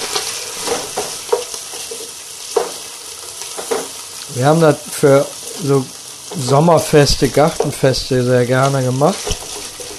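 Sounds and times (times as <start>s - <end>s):
scraping stir strokes in a frying pan: 0.0s - 4.0s, 6.3s - 9.9s
minced meat sizzling in a frying pan: 0.0s - 9.9s
speech: 4.4s - 9.4s.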